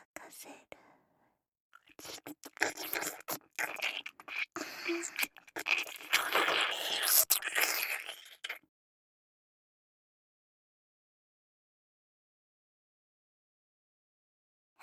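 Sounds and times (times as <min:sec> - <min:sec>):
ASMR ear licking sounds: 0:01.9 - 0:08.6.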